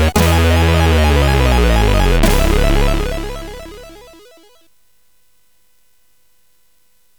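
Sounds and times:
synthesizer jingles: 0.2s - 4.4s.

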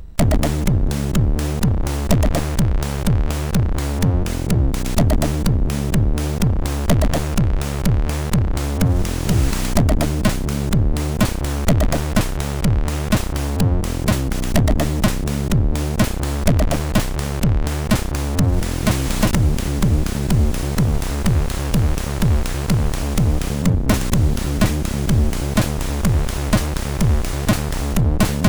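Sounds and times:
MOS 6581R2 SID chip music: 0.2s - 28.4s.

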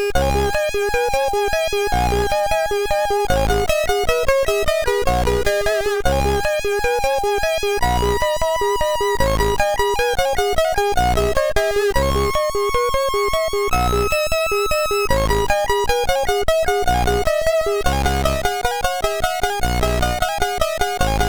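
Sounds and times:
chiptune music on a MOS6581R3 sound chip: 0.2s - 21.2s.

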